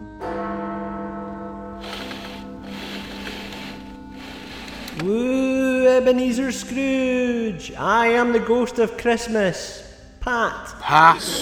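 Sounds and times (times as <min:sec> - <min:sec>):
deep clock bell tolling one: 0:01.6 - 0:05.2
soft breathy whooshing: 0:01.8 - 0:05.3
speech: 0:05.0 - 0:05.4, 0:06.0 - 0:11.4.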